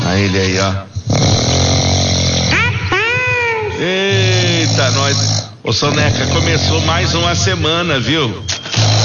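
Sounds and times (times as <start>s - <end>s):
speech: 0.2s - 1.4s, 3.8s - 9.0s
person snoring while asleep: 1.0s - 2.7s, 3.8s - 7.4s, 8.7s - 9.0s.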